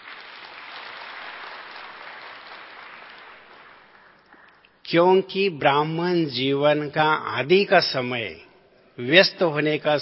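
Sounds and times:
audience clapping: 0.0 - 4.7
speech: 4.9 - 8.4, 9.0 - 10.0.

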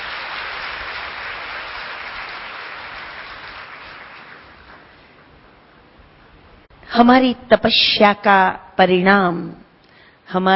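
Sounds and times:
crowd applause: 0.0 - 5.1
speech: 6.9 - 9.6, 10.3 - 10.5.

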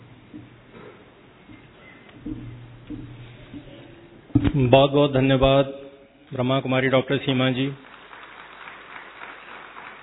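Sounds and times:
speech: 4.4 - 7.9
crowd applause: 7.8 - 10.0.

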